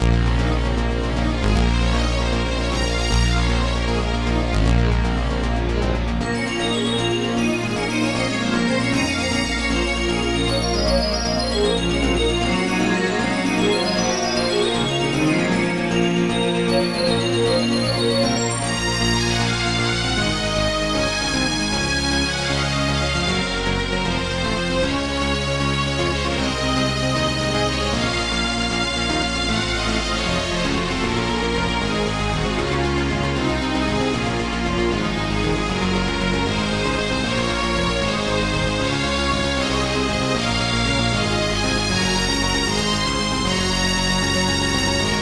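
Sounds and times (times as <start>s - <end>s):
AWE64 sound card synthesized music: 0.0s - 45.2s.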